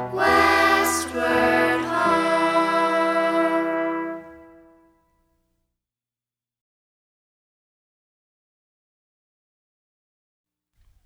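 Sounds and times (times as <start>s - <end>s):
music: 0.0s - 5.5s.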